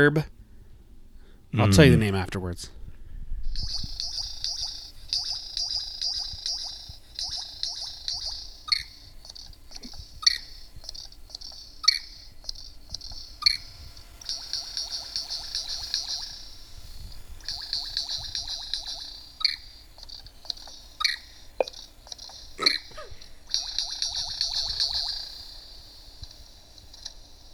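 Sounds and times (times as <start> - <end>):
speech: 0.0 - 0.4, 1.5 - 2.8
superb lyrebird song: 3.6 - 16.4, 17.4 - 25.3.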